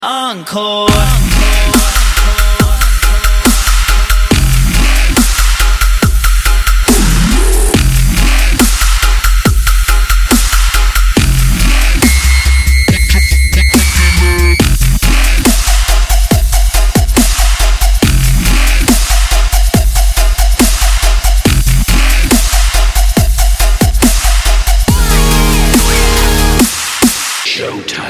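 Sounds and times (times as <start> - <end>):
dubstep music: 0.1 - 28.0.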